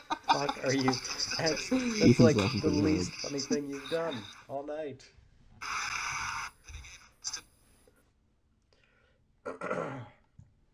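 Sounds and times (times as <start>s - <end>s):
laughter: 0.0s - 4.2s
speech: 0.4s - 5.2s
person clearing throat: 9.5s - 10.2s.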